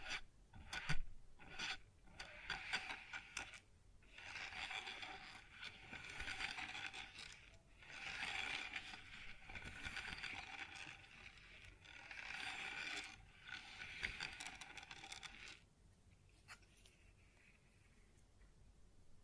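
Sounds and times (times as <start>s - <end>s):
scraping and rubbing on a wooden surface: 0.0s - 15.6s.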